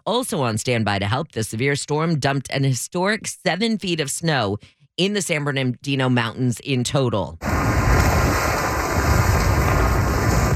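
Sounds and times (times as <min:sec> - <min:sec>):
speech: 0:00.0 - 0:07.6
rock slide, boulders tumbling down hillside: 0:07.4 - 0:10.5.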